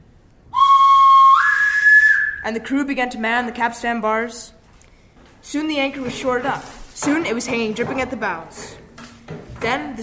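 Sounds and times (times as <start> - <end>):
boatswain's pipe whistle: 0.5 - 2.5
speech: 2.4 - 4.6, 5.4 - 10.0.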